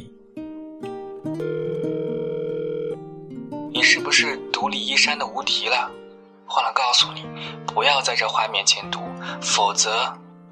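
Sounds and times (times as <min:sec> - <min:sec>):
speech: 0:01.4 - 0:02.0, 0:03.8 - 0:10.2
telephone dial tone: 0:01.4 - 0:03.0.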